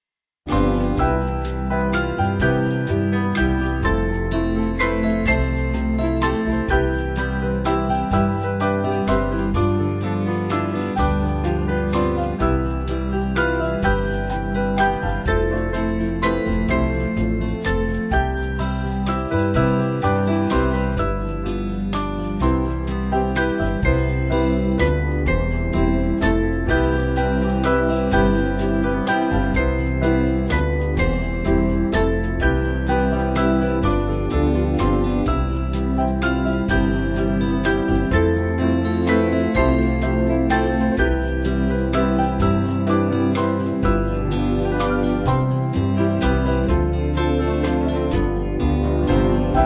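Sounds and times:
band backing music: 0:00.5 - 0:49.6.

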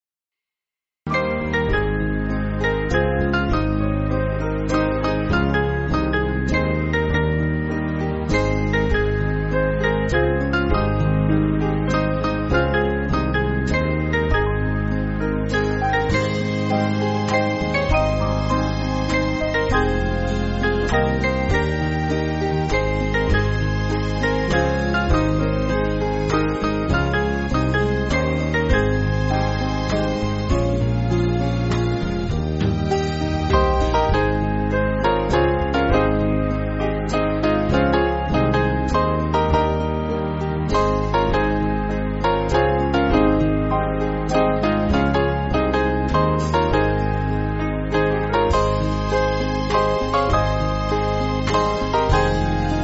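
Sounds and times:
band backing track for churches: 0:01.1 - 0:52.8.

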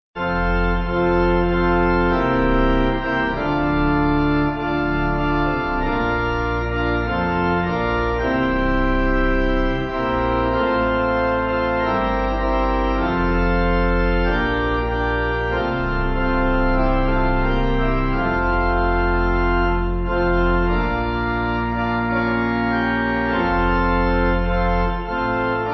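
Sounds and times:
pipe organ: 0:00.2 - 0:25.7.

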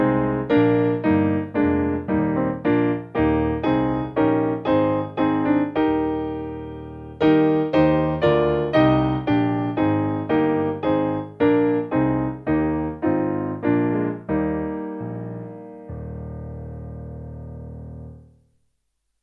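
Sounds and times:
piano piece: 0:00.0 - 0:18.3.

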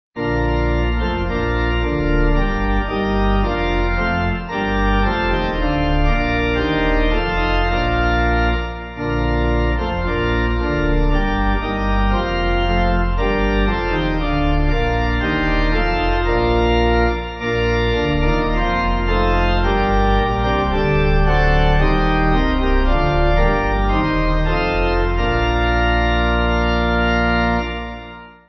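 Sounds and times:
pipe organ backing: 0:00.2 - 0:28.4.

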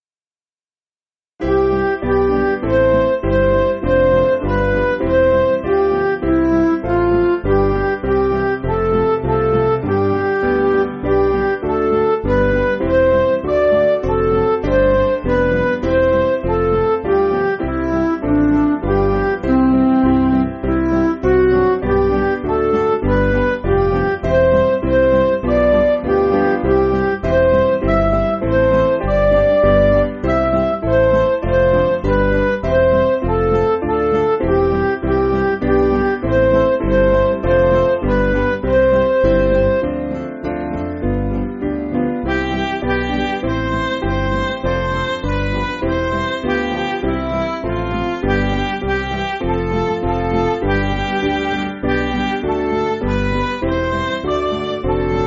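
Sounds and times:
MIDI backing music: 0:01.4 - 0:55.2.

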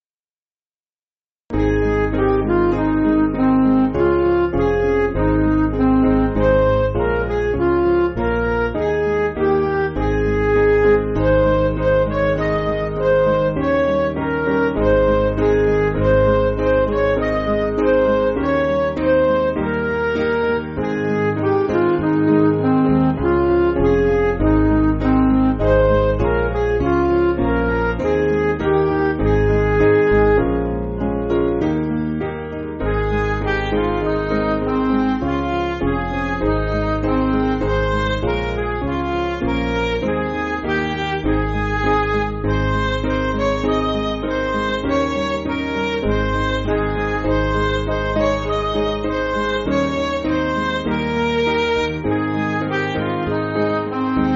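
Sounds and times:
MIDI music: 0:01.5 - 0:54.3.

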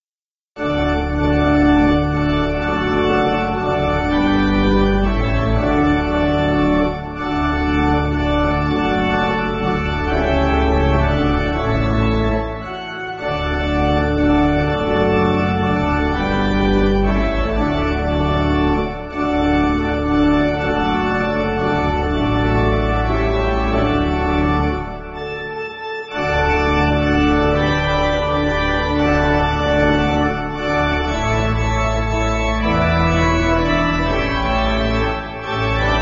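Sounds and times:
pipe organ playing: 0:00.6 - 0:35.9.

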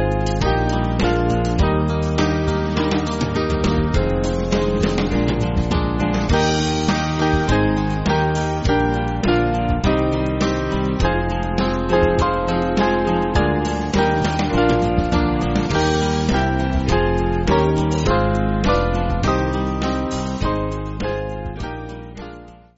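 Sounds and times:
small band playing church backing music in E-flat: 0:00.0 - 0:21.7.

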